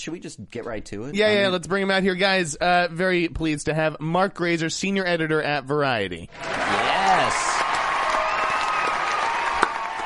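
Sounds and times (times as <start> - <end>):
speech: 0.0 - 7.6
canned studio audience applause: 6.3 - 10.0
sharp clap: 7.4 - 10.0.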